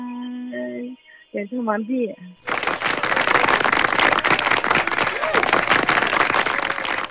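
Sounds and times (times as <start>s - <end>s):
speech: 1.4s - 2.5s
crowd applause: 2.4s - 7.0s.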